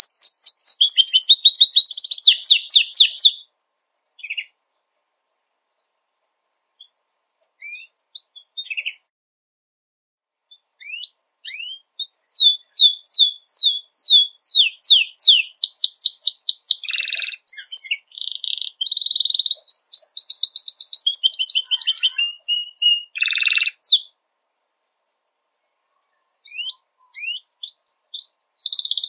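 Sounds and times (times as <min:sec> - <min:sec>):
white Belgian canary singing: 0:00.0 - 0:03.5, 0:04.2 - 0:04.6, 0:07.6 - 0:09.1, 0:10.5 - 0:24.2, 0:25.6 - 0:29.0.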